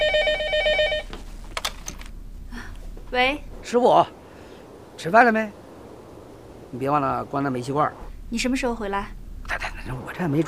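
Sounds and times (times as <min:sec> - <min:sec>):
telephone ringing: 0:00.0 - 0:01.2
speech: 0:03.1 - 0:04.2, 0:05.0 - 0:05.6, 0:06.7 - 0:10.4.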